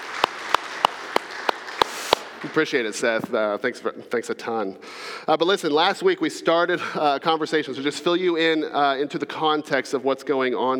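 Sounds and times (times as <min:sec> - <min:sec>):
audience applause: 0:00.0 - 0:03.4
soft continuous hiss: 0:00.0 - 0:08.9
speech: 0:02.4 - 0:10.7.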